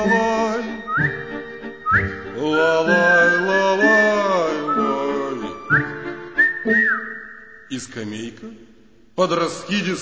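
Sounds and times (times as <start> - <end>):
speech: 0.0 - 0.3, 7.8 - 10.0
whistled imitation of nightingale song: 0.0 - 7.8.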